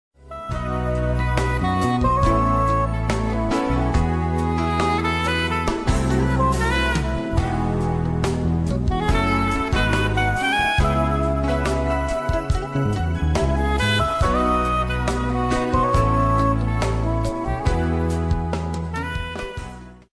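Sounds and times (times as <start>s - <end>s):
smooth jazz: 0.2s - 20.1s.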